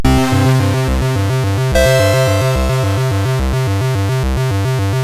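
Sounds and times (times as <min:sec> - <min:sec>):
MOS6581R4 SID chip music: 0:00.0 - 0:04.9.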